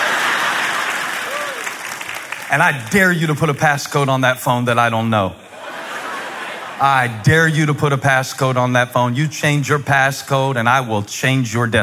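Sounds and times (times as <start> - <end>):
laughter: 0.0 - 1.8, 5.4 - 7.7
parent clapping in audience: 0.0 - 2.6
speech: 2.5 - 5.4, 6.8 - 11.8.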